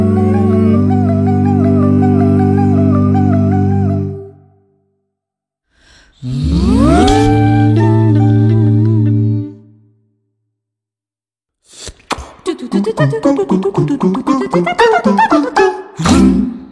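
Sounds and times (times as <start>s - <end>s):
a cappella vocal sound effect: 0.0s - 4.3s, 6.1s - 9.8s, 11.7s - 16.7s.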